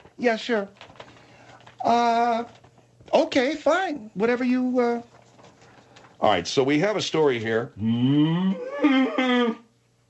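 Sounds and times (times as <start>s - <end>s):
speech: 0.2s - 0.9s, 1.8s - 5.1s, 6.2s - 9.6s
person imitating a cow's moo: 7.8s - 9.7s.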